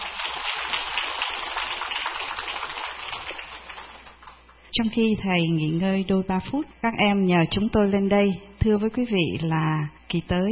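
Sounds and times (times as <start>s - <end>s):
audience applause: 0.0s - 4.4s
speech: 4.8s - 10.5s.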